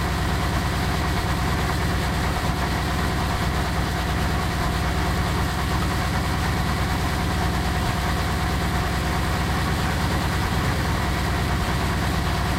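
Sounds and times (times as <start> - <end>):
M1 tank engine running at rpm 66: 0.0 - 12.5.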